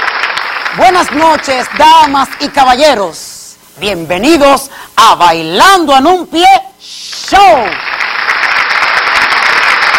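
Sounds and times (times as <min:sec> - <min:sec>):
audience applause: 0:00.0 - 0:02.6, 0:07.5 - 0:09.9
speech: 0:00.8 - 0:03.2, 0:03.8 - 0:07.9.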